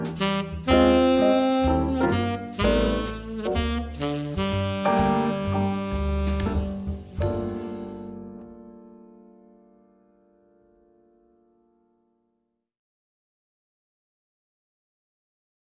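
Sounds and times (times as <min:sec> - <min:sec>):
tenor saxophone playing: 0:00.0 - 0:08.6.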